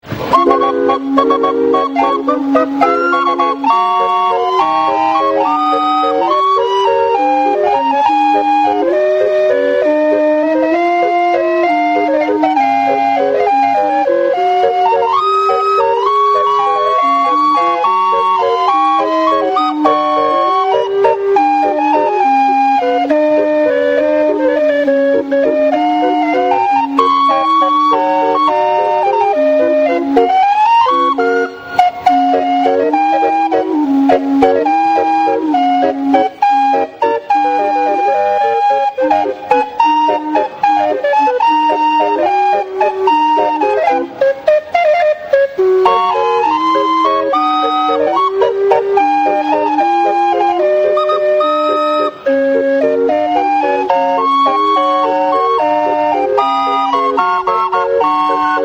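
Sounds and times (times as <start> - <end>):
calliope: 0.0 - 58.6.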